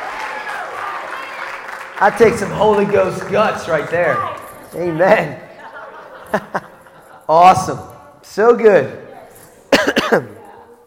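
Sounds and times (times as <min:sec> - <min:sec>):
audience applause: 0:00.0 - 0:04.5
speech: 0:02.0 - 0:05.4, 0:06.3 - 0:06.7, 0:07.3 - 0:09.0, 0:10.1 - 0:10.3
laughter: 0:02.1 - 0:08.0.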